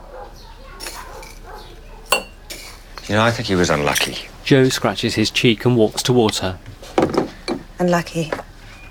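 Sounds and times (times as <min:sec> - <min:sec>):
spoon clinking against coffee cups while spooning coffee: 0:02.1 - 0:03.1
speech: 0:03.1 - 0:06.7, 0:07.8 - 0:08.4.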